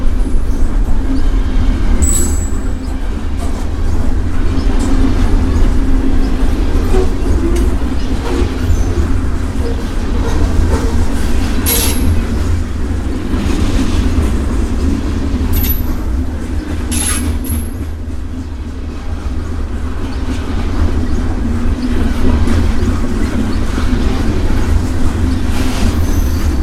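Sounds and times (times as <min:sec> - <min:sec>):
freight train in Burnaby BC Canada: 0:00.0 - 0:26.6
railway crossing in Burnaby BC Canada: 0:01.9 - 0:03.1, 0:11.6 - 0:12.4, 0:15.5 - 0:17.8.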